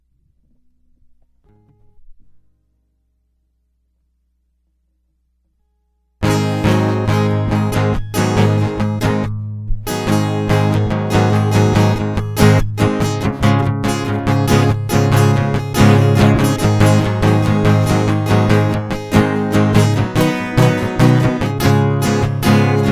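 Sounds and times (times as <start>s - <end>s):
guitar loop: 6.2s - 22.9s.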